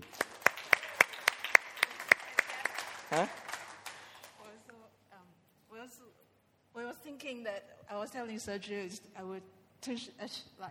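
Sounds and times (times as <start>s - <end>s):
small audience applause: 0.0s - 4.4s
speech: 3.1s - 3.4s, 8.0s - 10.7s.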